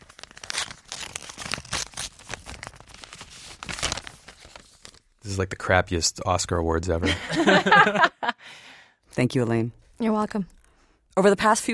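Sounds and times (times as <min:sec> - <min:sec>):
envelope being torn open in front of a microphone: 0:00.0 - 0:05.1
paper tearing and crinkling: 0:00.0 - 0:05.1
speech: 0:05.2 - 0:08.6, 0:09.2 - 0:10.6, 0:11.2 - 0:11.7
laughter: 0:07.0 - 0:08.4.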